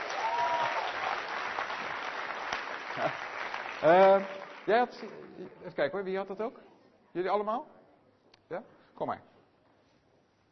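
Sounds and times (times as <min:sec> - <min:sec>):
applause: 0:00.0 - 0:05.7
speech: 0:03.8 - 0:07.8, 0:08.5 - 0:09.3.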